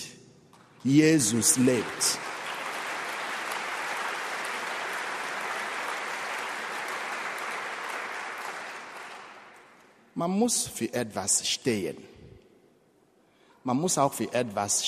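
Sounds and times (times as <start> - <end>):
speech: 0.8 - 2.3, 10.2 - 12.2, 13.6 - 14.8
audience cheering and applauding: 1.2 - 9.7.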